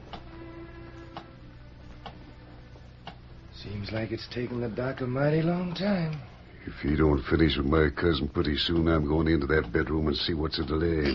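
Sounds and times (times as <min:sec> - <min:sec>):
low mechanical hum: 0:00.0 - 0:11.1
speech: 0:03.6 - 0:11.1
big clock ticking: 0:08.6 - 0:10.0.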